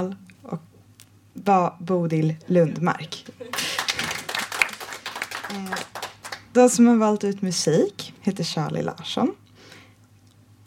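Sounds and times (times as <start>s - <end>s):
speech: 0.0s - 0.7s, 1.4s - 3.4s, 5.5s - 5.9s, 6.6s - 9.4s
applause: 3.5s - 6.5s.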